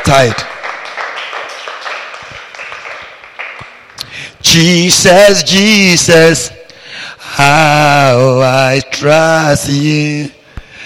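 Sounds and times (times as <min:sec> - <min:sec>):
audience clapping: 0:00.0 - 0:04.2
speech: 0:00.1 - 0:00.5, 0:04.5 - 0:10.4.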